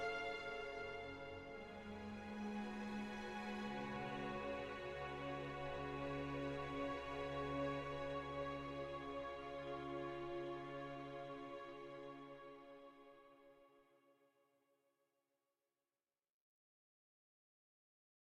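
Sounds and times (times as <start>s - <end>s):
ambient music: 0.0s - 13.4s.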